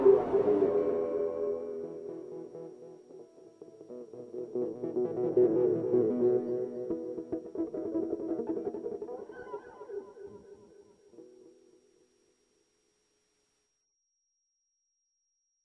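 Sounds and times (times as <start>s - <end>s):
instrumental guitar music: 0.0s - 11.5s.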